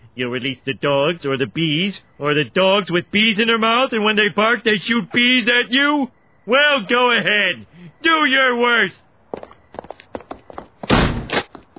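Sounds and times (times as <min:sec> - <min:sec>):
speech: 0:00.2 - 0:09.4
light quick taps or steps: 0:04.9 - 0:05.7, 0:09.0 - 0:11.7
door being shut and locked: 0:10.8 - 0:11.5.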